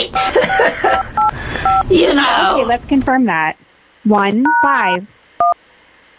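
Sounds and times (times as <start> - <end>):
laughter: 0.2 - 1.2
telephone keypad tones entering zip code: 0.9 - 1.9
speech: 1.9 - 5.6.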